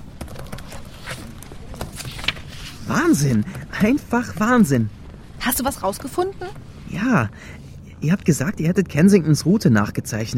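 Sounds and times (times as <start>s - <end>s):
typing on a notebook computer keyboard: 0.0s - 2.4s
speech: 2.9s - 10.3s.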